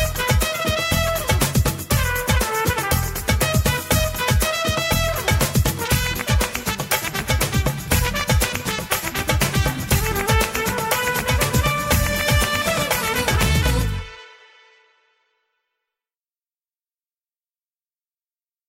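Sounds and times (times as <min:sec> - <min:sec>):
instrumental theme music: 0:00.0 - 0:14.9.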